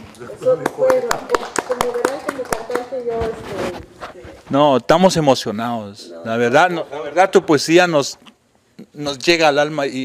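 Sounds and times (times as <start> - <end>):
speech: 0.2 - 8.3, 9.0 - 10.0
applause: 0.6 - 3.1.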